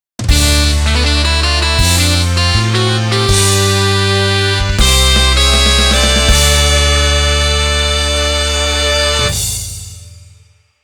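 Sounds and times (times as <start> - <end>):
race start fanfare: 0.2 - 9.8.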